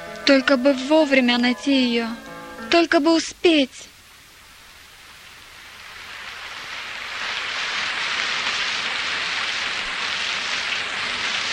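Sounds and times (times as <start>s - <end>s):
speech: 0.3s - 3.9s
heavy rain in a storm: 2.8s - 11.5s.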